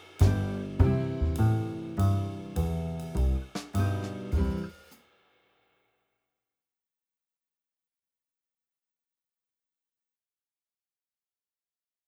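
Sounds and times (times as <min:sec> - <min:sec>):
slow big band boogie swing backing track: 0:00.0 - 0:04.8.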